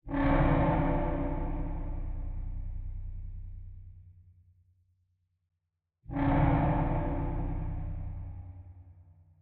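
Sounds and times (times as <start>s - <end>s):
horror bass drone: 0.1s - 4.3s, 6.1s - 9.2s.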